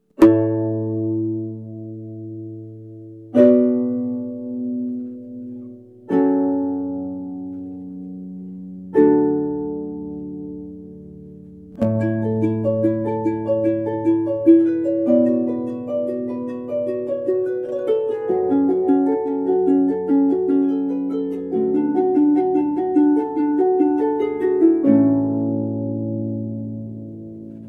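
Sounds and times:
harp: 0:00.0 - 0:27.6.

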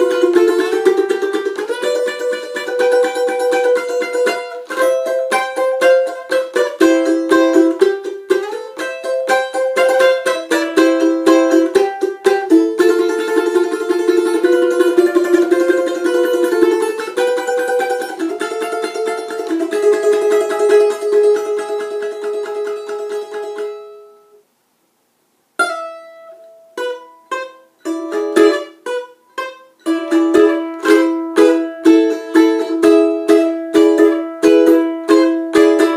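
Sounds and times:
balalaika: 0:00.0 - 0:24.3, 0:25.6 - 0:35.9.

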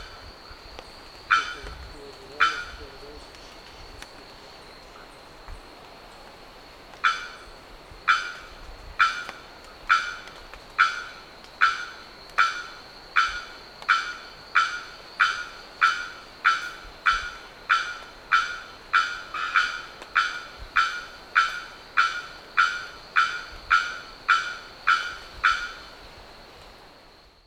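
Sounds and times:
bearded bellbird calling: 0:01.3 - 0:01.7, 0:02.3 - 0:02.8, 0:10.8 - 0:25.8.

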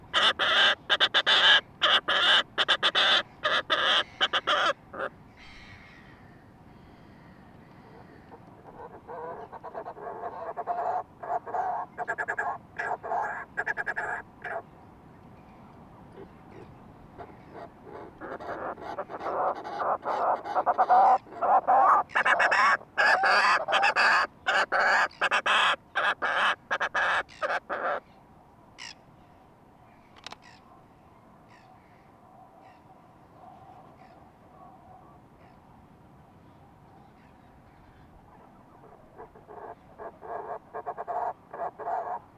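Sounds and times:
fulmar prion calls: 0:00.1 - 0:05.8, 0:08.6 - 0:14.6, 0:17.2 - 0:28.0, 0:39.2 - 0:42.3.

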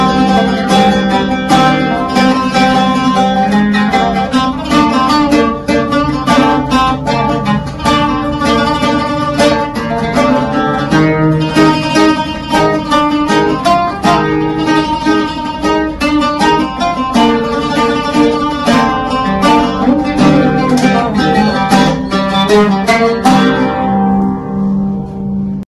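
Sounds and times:
lute: 0:00.0 - 0:25.6.

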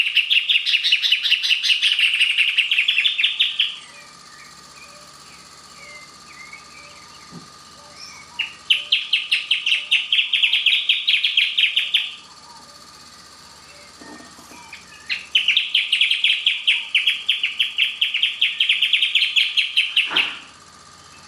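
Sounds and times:
Band-tailed hornero giving fast shrill rattling calls: 0:00.0 - 0:07.3, 0:07.9 - 0:12.9, 0:13.6 - 0:20.5.

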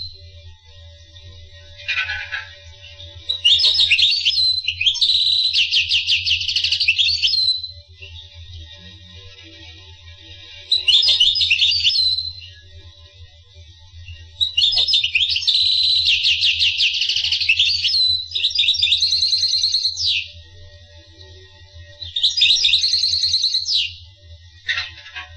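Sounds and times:
finch song: 0:01.0 - 0:08.8, 0:10.5 - 0:12.8, 0:14.0 - 0:20.5, 0:21.8 - 0:25.3.

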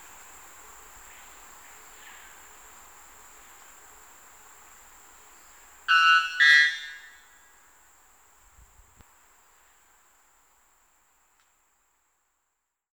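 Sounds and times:
white bellbird calling: 0:05.9 - 0:07.2.

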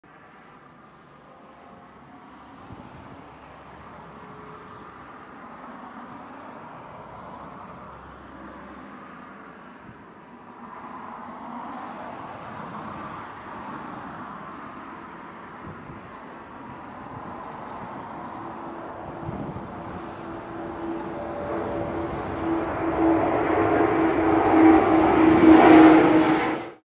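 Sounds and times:
Antonov An-124 aircraft engines: 0:00.1 - 0:26.8.

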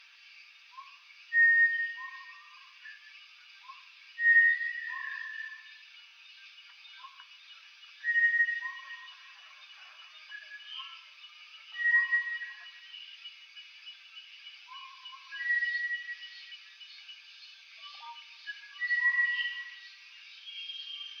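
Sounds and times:
Bartlett's tinamou calling with pure steady whistles: 0:01.3 - 0:03.0, 0:04.2 - 0:05.7, 0:08.0 - 0:09.2, 0:11.7 - 0:12.8, 0:14.7 - 0:16.4, 0:18.0 - 0:19.9.

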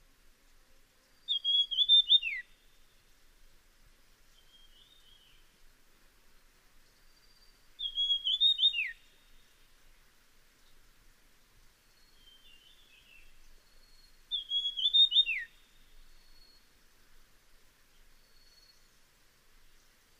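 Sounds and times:
Dusky fulvetta high whistle: 0:01.3 - 0:02.5, 0:07.8 - 0:09.0, 0:13.8 - 0:15.6.

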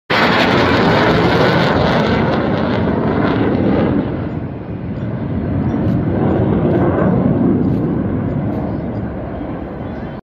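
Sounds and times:
MiG-29 fighter jet: 0:00.1 - 0:10.2.

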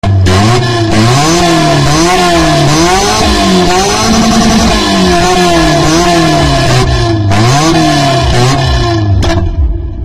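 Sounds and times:
engine exhaust: 0:00.0 - 0:10.0.

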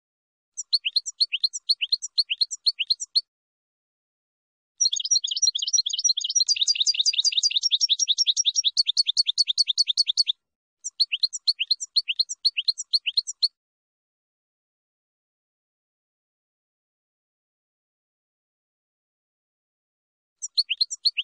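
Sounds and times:
finch song: 0:00.6 - 0:03.3, 0:04.8 - 0:13.6, 0:20.4 - 0:21.2.

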